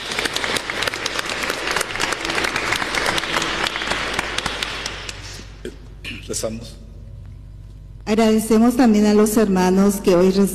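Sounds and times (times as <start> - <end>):
audience applause: 0.0 - 5.6
speech: 6.3 - 6.8, 8.1 - 10.5.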